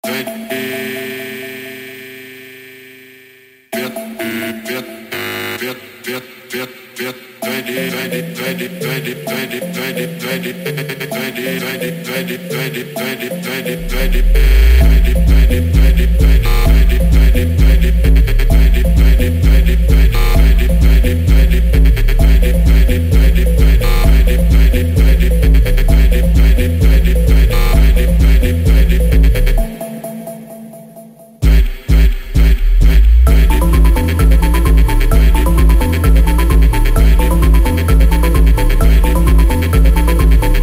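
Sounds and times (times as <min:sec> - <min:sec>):
chill Brazilian funk music: 0:13.7 - 0:29.9, 0:31.4 - 0:40.6.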